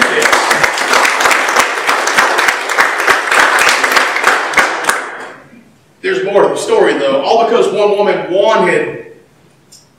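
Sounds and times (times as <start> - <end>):
crowd applauding: 0.0 - 5.3
speech: 6.3 - 9.1.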